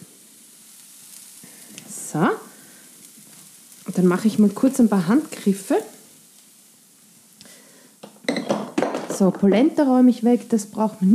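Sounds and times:
onion sizzling in a frying pan: 0.0 - 11.1
speech: 2.1 - 2.5, 4.0 - 6.0, 9.2 - 11.1.

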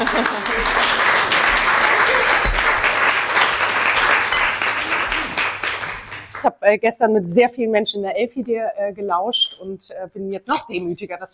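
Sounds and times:
laughter: 0.0 - 2.5
audience applause: 0.0 - 6.4
speech: 6.7 - 11.3.

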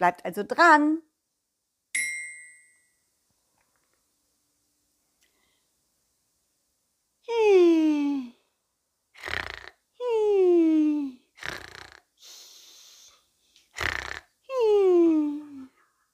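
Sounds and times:
speech: 0.0 - 1.1, 7.3 - 8.3
person snoring: 9.2 - 9.8, 10.9 - 15.7.

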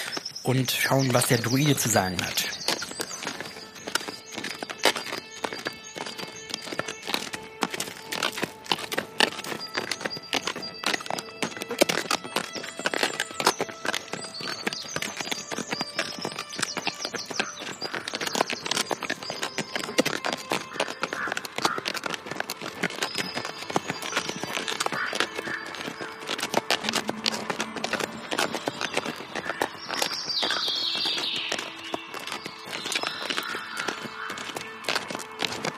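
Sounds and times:
bird calls: 0.0 - 6.6, 12.6 - 19.9, 20.5 - 22.0, 23.1 - 35.7
horse hooves clip-clopping: 0.0 - 35.7
speech: 0.4 - 2.6.

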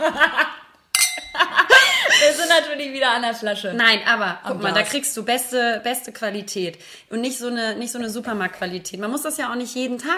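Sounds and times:
speech: 0.0 - 0.4, 2.6 - 10.1
people laughing: 0.0 - 0.7, 1.3 - 2.6
glasses clinking in a toast: 0.9 - 1.6.

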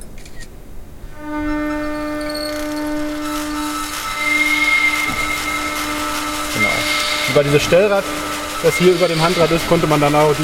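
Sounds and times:
electric motor starting to turn: 2.4 - 10.4
speech: 7.4 - 10.4.

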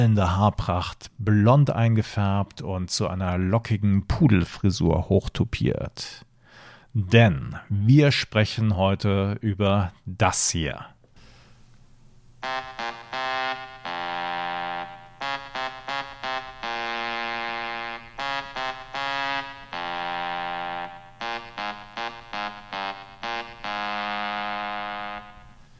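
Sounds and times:
speech: 0.0 - 6.3, 6.9 - 11.0
rock anthem melody played on a phone: 12.4 - 25.7.

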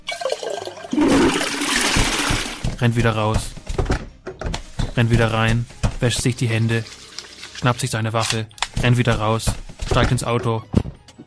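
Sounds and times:
toilet flushing: 0.0 - 2.7, 6.2 - 7.8
speech: 2.8 - 3.6, 5.0 - 7.0, 7.6 - 10.8.

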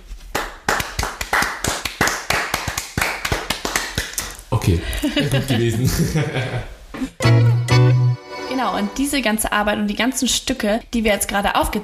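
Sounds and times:
clapping: 0.3 - 4.4
laughter: 4.6 - 7.1
speech: 4.7 - 7.4, 8.6 - 11.8.

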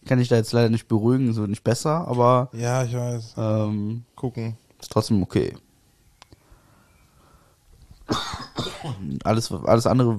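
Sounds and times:
speech: 0.1 - 5.6, 8.8 - 10.1
person coughing into a microphone: 8.1 - 9.2.

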